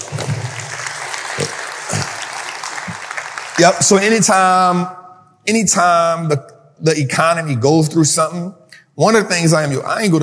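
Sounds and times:
audience clapping: 0:00.0 - 0:04.4
speech: 0:03.6 - 0:10.2.

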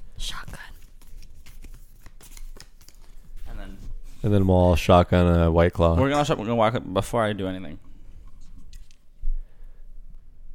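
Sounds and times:
shuffling a deck of playing cards: 0:00.4 - 0:03.8
speech: 0:04.2 - 0:07.8.

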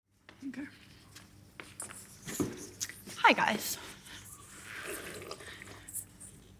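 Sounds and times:
speech: 0:00.4 - 0:00.9, 0:03.2 - 0:03.9
person slurping a drink: 0:04.4 - 0:06.5.

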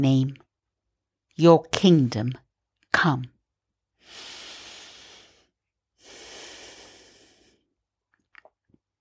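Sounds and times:
speech: 0:00.0 - 0:00.4, 0:01.4 - 0:02.4, 0:03.0 - 0:03.3
slow deliberate breathing during a guided prayer: 0:04.0 - 0:07.8.

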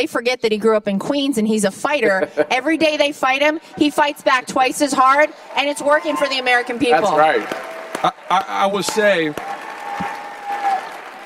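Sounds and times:
speech: 0:00.0 - 0:09.5
women in the audience clapping and cheering: 0:04.9 - 0:11.2.

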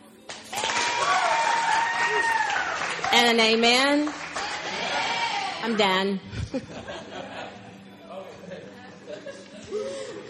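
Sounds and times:
audience clapping: 0:00.2 - 0:05.7
speech: 0:03.2 - 0:04.2, 0:05.6 - 0:07.3
laughter: 0:04.4 - 0:05.5, 0:06.3 - 0:10.2.

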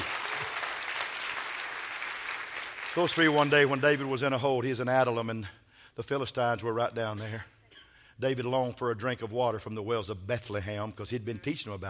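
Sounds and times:
church congregation clapping hands in rejoicing: 0:00.0 - 0:04.9
speech: 0:03.0 - 0:07.5, 0:08.2 - 0:11.8.

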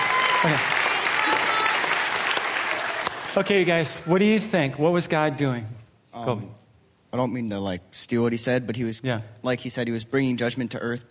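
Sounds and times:
group clapping: 0:00.0 - 0:03.9
speech: 0:00.4 - 0:00.8, 0:03.4 - 0:11.1.

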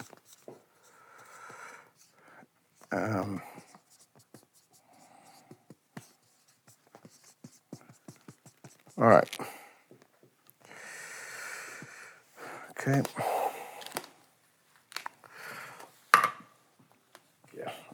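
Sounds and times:
pen writing an answer on paper: 0:00.0 - 0:02.2, 0:02.8 - 0:09.2
speech: 0:02.9 - 0:03.6, 0:09.0 - 0:09.6, 0:12.8 - 0:13.3.

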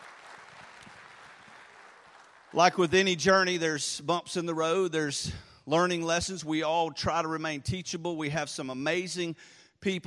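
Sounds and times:
audience clapping: 0:00.0 - 0:03.2
speech: 0:02.5 - 0:10.0.

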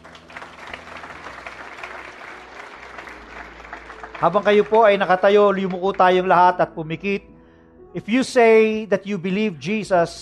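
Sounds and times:
church congregation applause: 0:00.0 - 0:06.6
speech: 0:04.2 - 0:07.3, 0:07.9 - 0:10.2.

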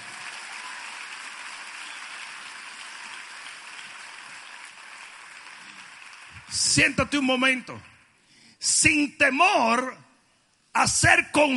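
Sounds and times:
audience applause: 0:00.0 - 0:07.3
speech: 0:06.5 - 0:07.9, 0:08.6 - 0:10.0, 0:10.8 - 0:11.5.

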